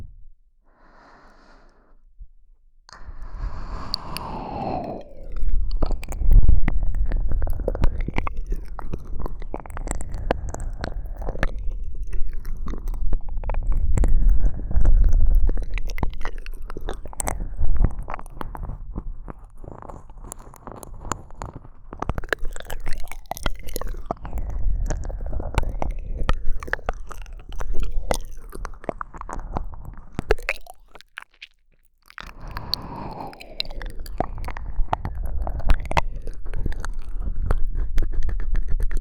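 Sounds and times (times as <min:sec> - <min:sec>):
breathy exhales: 0:00.7 - 0:02.0, 0:02.9 - 0:06.0, 0:32.3 - 0:34.5
ear licking: 0:02.9 - 0:38.9.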